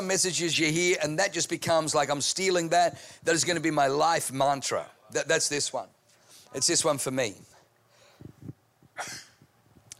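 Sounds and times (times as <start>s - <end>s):
speech: 0.0s - 7.6s
sneeze: 9.0s - 9.4s.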